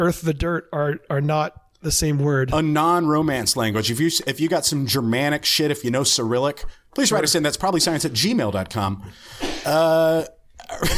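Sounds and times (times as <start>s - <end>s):
speech: 0.0s - 10.9s
person sneezing: 9.3s - 10.1s.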